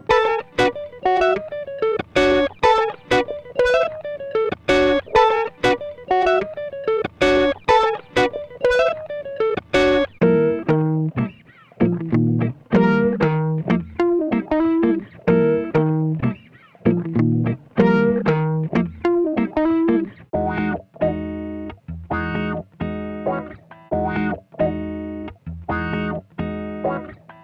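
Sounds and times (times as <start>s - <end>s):
funk guitar: 0.0s - 27.4s.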